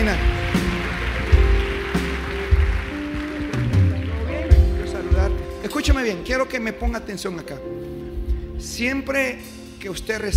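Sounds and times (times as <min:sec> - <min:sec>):
audience applause: 0:00.0 - 0:06.2
speech: 0:06.1 - 0:07.9, 0:08.6 - 0:10.3.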